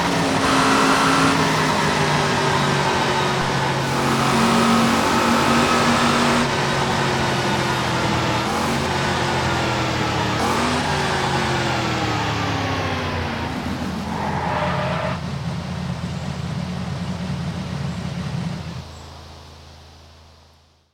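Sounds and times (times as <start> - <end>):
Saleen S7 twin turbo car engine: 0.0 - 20.5.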